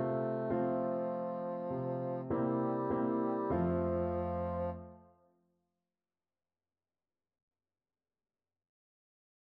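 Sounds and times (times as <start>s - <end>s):
bassoon playing a folk song: 0.0s - 5.1s.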